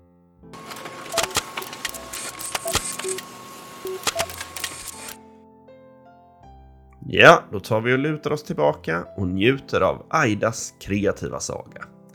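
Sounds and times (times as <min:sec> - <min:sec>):
printer printing out a story: 0:00.6 - 0:05.2
speech: 0:07.1 - 0:12.0.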